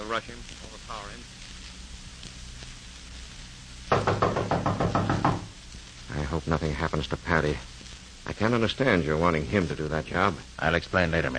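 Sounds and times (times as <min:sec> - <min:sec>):
speech: 0:00.1 - 0:01.4, 0:06.4 - 0:11.3
knocking on a front door: 0:03.9 - 0:05.6.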